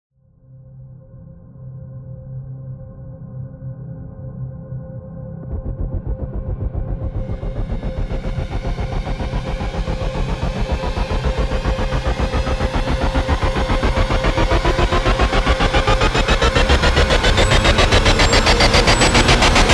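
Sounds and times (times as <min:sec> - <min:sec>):
rising sound: 0:05.4 - 0:19.7.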